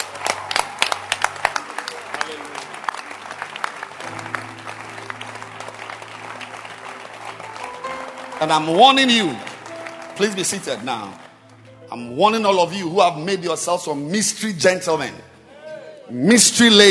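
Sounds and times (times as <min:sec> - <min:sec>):
church congregation clapping to celebrate: 0:00.0 - 0:13.4
speech: 0:08.4 - 0:09.4, 0:10.2 - 0:11.2, 0:11.9 - 0:15.3, 0:16.1 - 0:16.8.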